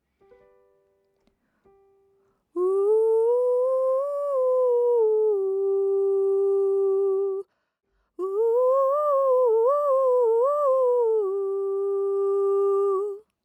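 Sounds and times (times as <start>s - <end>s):
falsetto voice: 2.6s - 7.5s, 8.2s - 13.3s.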